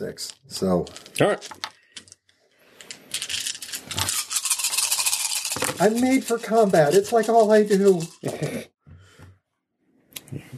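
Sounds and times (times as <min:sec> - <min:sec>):
speech: 0:00.0 - 0:01.7, 0:05.8 - 0:08.7, 0:10.3 - 0:10.5
plastic dice rattling: 0:00.2 - 0:08.6.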